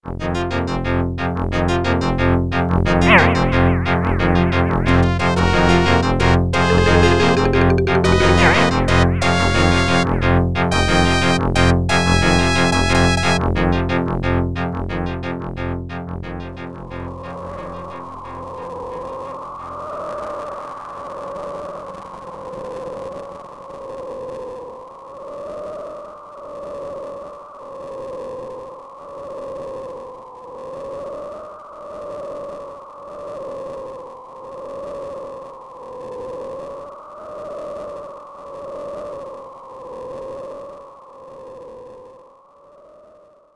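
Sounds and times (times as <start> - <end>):
arcade game title screen music: 0.1 - 18.7.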